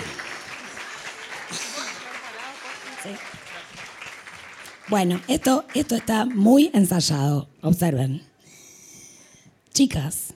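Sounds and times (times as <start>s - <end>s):
crowd clapping: 0.0s - 6.8s
speech: 3.0s - 3.4s, 4.9s - 8.3s, 9.8s - 10.3s.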